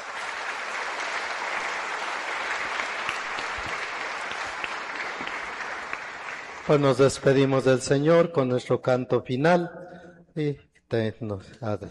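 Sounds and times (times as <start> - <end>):
audience applause: 0.0 - 7.3
speech: 6.7 - 9.8, 10.4 - 11.8.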